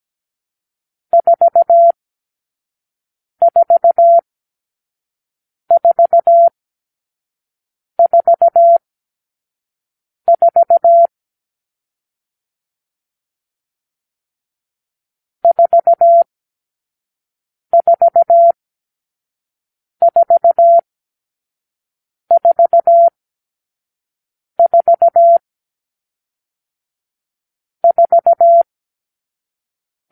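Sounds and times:
morse code beeps: 1.2 - 2.0, 3.4 - 4.2, 5.7 - 6.5, 8.0 - 8.8, 10.3 - 11.1, 15.4 - 16.3, 17.8 - 18.6, 20.1 - 20.8, 22.3 - 23.1, 24.6 - 25.4, 27.8 - 28.7.

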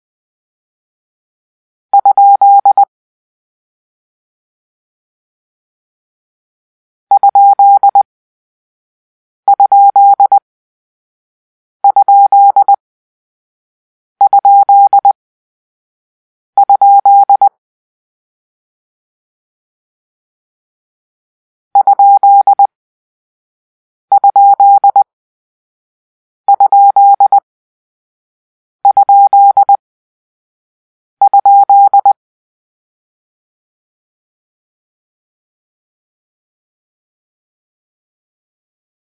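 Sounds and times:
morse code for a question mark: 2.0 - 2.9, 7.1 - 8.0, 9.5 - 10.4, 11.9 - 12.8, 14.2 - 15.2, 16.6 - 17.5, 21.8 - 22.7, 24.1 - 25.1, 26.5 - 27.4, 28.9 - 29.8, 31.2 - 32.2.

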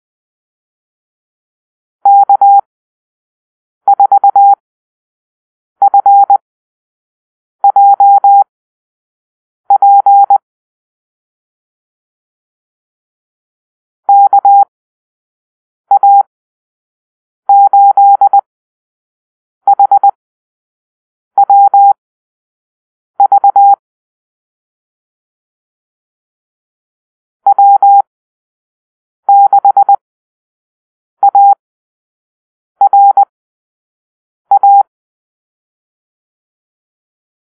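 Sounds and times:
morse code call-sign beeps: 2.1 - 2.7, 3.9 - 4.6, 5.8 - 6.4, 7.6 - 8.5, 9.7 - 10.4, 14.1 - 14.7, 15.9 - 16.3, 17.5 - 18.4, 19.7 - 20.2, 21.4 - 22.0, 23.2 - 23.8, 27.5 - 28.1, 29.3 - 30.0, 31.2 - 31.6, 32.8 - 33.3, 34.5 - 34.9.

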